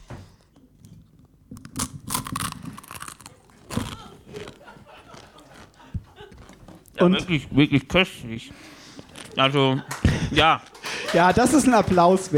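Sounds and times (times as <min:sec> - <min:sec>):
crunchy chewing of food: 0:01.6 - 0:07.0
laughter: 0:03.8 - 0:06.8, 0:09.1 - 0:12.3
speech: 0:07.0 - 0:08.8, 0:09.4 - 0:12.3.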